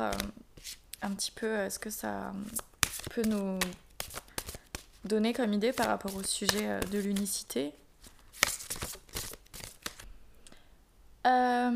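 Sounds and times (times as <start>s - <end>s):
card drawn from a deck rustling and snapping: 0.0s - 0.8s, 2.4s - 10.1s
speech: 0.0s - 3.8s, 5.0s - 7.8s, 11.3s - 11.7s.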